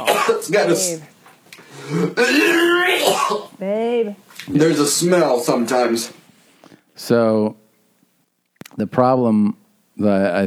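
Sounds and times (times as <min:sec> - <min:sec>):
speech: 0:00.0 - 0:06.2, 0:07.0 - 0:07.6, 0:08.8 - 0:10.4
man retching while cleaning a shower drain: 0:01.8 - 0:03.5.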